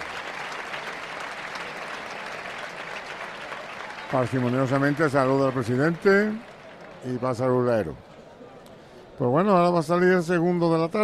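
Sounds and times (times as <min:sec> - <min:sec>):
bullring crowd applauding an ovation: 0:00.0 - 0:08.0
speech: 0:04.1 - 0:08.1, 0:09.2 - 0:11.0.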